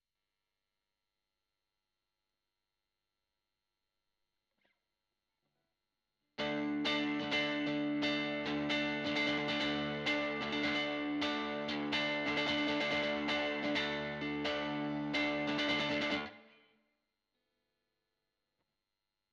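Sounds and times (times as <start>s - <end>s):
guitar recorded with Royer microphone: 6.4s - 16.8s.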